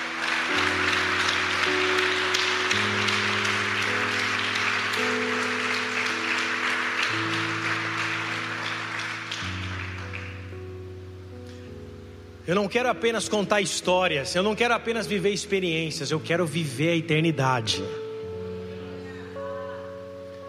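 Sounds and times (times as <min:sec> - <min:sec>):
audience applause: 0:00.0 - 0:10.5
speech: 0:12.5 - 0:18.0.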